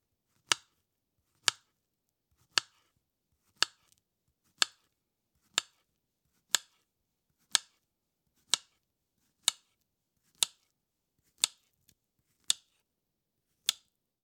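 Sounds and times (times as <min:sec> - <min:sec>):
slicing a banana: 0:02.3 - 0:05.8, 0:06.4 - 0:06.8, 0:08.4 - 0:08.8, 0:09.4 - 0:10.7, 0:11.3 - 0:12.8.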